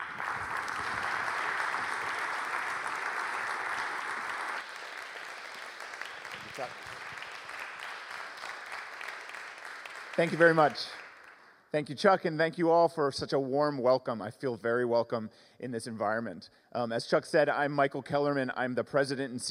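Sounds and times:
audience round of applause: 0.0s - 11.4s
speech: 6.6s - 7.0s, 10.2s - 11.0s, 11.7s - 19.4s.

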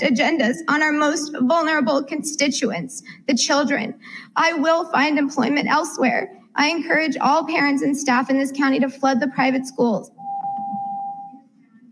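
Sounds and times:
speech: 0.0s - 10.2s
beep cutting off a speaker's microphone: 10.2s - 11.4s.

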